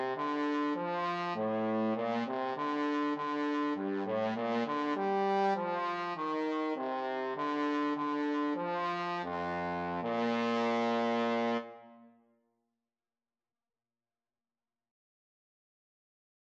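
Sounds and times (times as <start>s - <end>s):
trombone duet: 0.0s - 11.8s.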